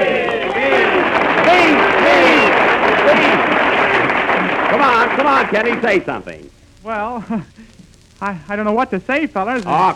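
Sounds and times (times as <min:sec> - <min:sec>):
group of men cheering hooray in unison: 0:00.0 - 0:05.5
speech: 0:05.2 - 0:09.9.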